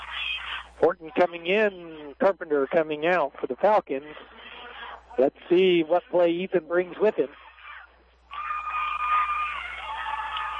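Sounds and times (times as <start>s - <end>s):
speech: 0.8s - 4.4s, 5.2s - 7.4s
crowd cheering at football game: 7.5s - 10.5s.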